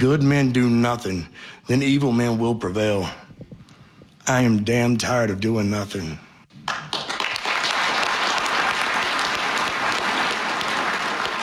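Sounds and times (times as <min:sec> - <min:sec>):
speech: 0:00.0 - 0:03.2, 0:04.3 - 0:06.2
sustained applause from a large audience: 0:06.6 - 0:11.4.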